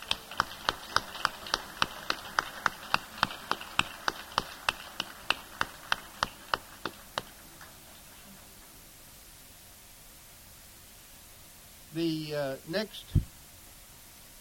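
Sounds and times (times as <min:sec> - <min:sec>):
crisp hand claps: 0:00.0 - 0:08.4
speech: 0:12.0 - 0:13.3.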